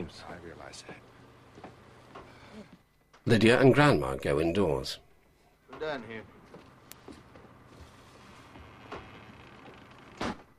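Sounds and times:
speech: 0.0s - 1.2s, 2.6s - 5.0s, 5.8s - 6.4s
back door being shut: 5.7s - 6.1s, 7.8s - 10.5s.

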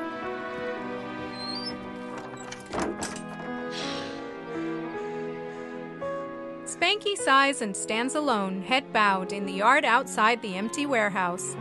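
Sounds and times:
secret door being closed: 1.3s - 4.0s
speech: 6.9s - 11.6s.

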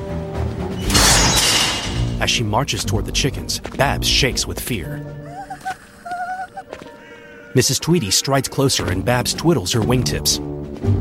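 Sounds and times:
gate slammed open: 0.8s - 2.2s
speech: 2.2s - 5.2s, 7.6s - 10.9s.

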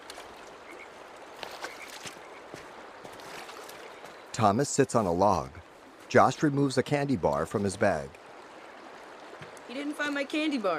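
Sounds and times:
stream water flowing: 0.0s - 10.7s
speech: 4.4s - 8.2s, 10.0s - 10.7s.

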